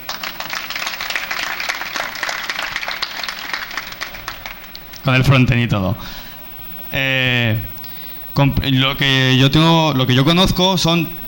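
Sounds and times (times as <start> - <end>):
applause: 0.0 - 5.1
speech: 5.0 - 6.2, 6.9 - 7.7, 8.4 - 11.2.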